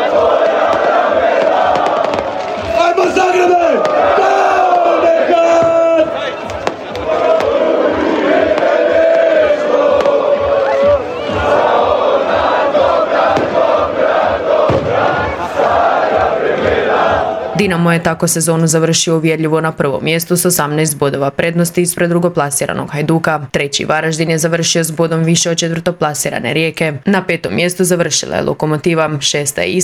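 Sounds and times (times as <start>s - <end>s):
Dinamo football players and fans chanting and cheering outside a stadium: 0.0s - 18.0s
speech: 17.7s - 29.8s.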